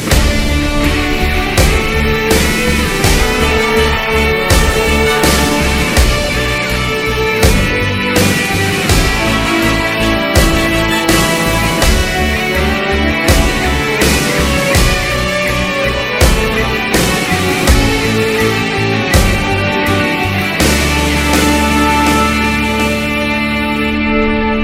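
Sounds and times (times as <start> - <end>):
national anthem: 0.1 - 24.4.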